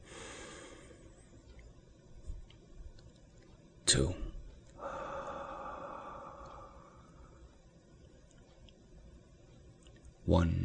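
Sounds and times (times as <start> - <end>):
deep breath in with eyes closed: 0.0 - 1.1, 4.8 - 7.5
speech: 3.9 - 4.2, 10.3 - 10.6.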